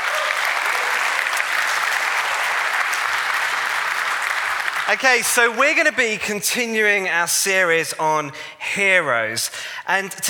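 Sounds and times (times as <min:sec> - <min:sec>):
audience applause: 0:00.0 - 0:06.0
speech: 0:04.9 - 0:10.2.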